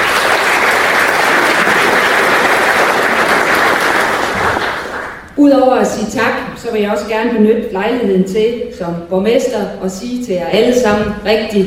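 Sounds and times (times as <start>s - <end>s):
crowd clapping: 0.0s - 5.4s
speech: 5.4s - 11.6s.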